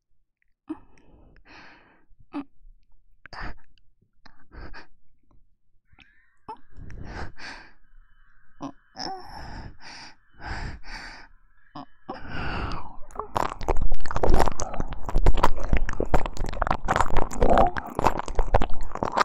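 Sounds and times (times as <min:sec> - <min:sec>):
wet ear licking: 0:12.2 - 0:19.2.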